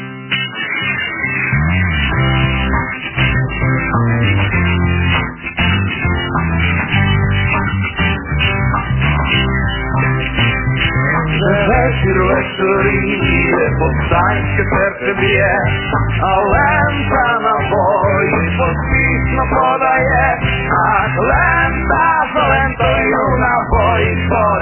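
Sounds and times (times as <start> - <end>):
sharp rhythmic beats: 0.3 - 24.6
partisan war song: 10.9 - 24.6.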